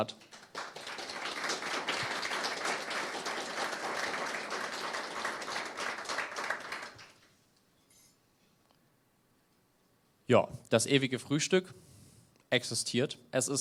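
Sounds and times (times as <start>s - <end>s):
speech: 0.0s - 0.2s, 10.3s - 11.9s, 12.5s - 13.6s
audience applause: 0.0s - 7.3s.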